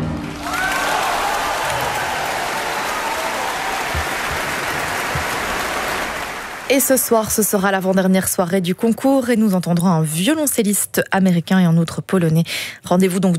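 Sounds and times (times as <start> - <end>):
concert hall audience applause: 0.1 - 7.1
speech: 6.7 - 13.3.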